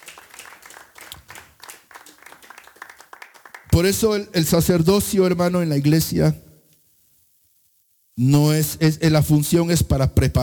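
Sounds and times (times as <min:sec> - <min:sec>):
audience clapping hands: 0:00.0 - 0:04.0
speech: 0:03.8 - 0:06.4, 0:08.2 - 0:10.4.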